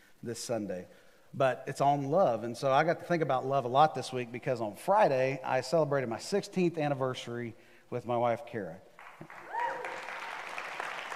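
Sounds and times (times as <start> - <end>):
speech: 0.2 - 9.4
crowd applauding: 9.0 - 11.1
whoops and cheers: 9.2 - 11.1.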